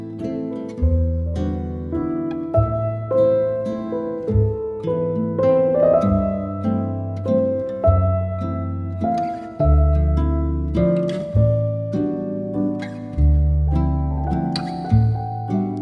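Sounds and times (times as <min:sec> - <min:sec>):
piano waltz: 0:00.0 - 0:15.8.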